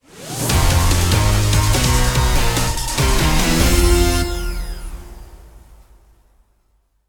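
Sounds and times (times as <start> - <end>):
short timed event music ditty: 0.5 - 5.4.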